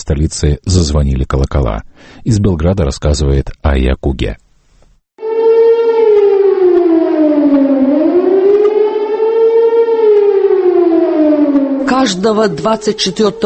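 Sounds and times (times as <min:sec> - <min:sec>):
speech: 0:00.1 - 0:04.4, 0:12.0 - 0:13.4
air raid all-clear siren: 0:05.2 - 0:13.4.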